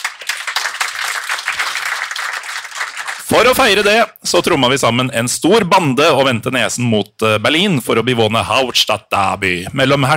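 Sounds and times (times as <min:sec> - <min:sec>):
applause: 0:00.0 - 0:03.9
speech: 0:03.3 - 0:10.1.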